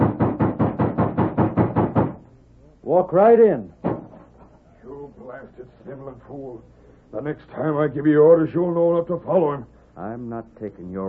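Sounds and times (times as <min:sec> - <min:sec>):
heavy knocks on a door: 0:00.0 - 0:02.2, 0:03.8 - 0:04.2
speech: 0:02.9 - 0:03.8, 0:05.4 - 0:11.0.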